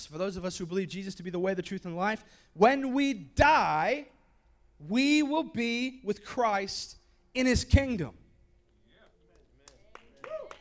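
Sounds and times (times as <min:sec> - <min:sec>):
speech: 0:00.0 - 0:04.2, 0:04.8 - 0:08.2
sparse applause from audience: 0:09.9 - 0:10.6.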